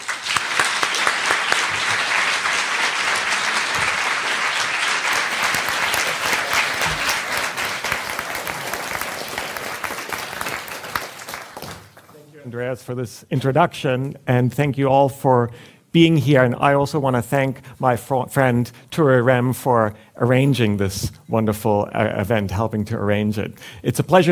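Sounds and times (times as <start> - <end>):
audience applauding to welcome a professor: 0.0 - 12.1
speech: 12.7 - 24.3.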